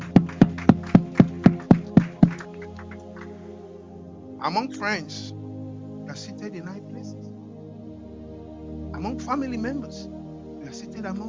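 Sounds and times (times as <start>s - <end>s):
audience clapping in unison: 0.0s - 3.4s
speech: 4.4s - 5.4s, 6.1s - 7.3s, 8.9s - 11.2s.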